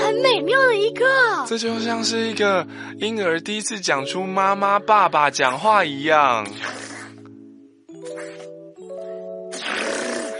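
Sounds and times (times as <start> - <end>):
speech: 0.4 - 6.9
person attempting a rolled tongue trill against the upper palate: 6.4 - 7.4, 8.0 - 8.6, 9.5 - 10.3.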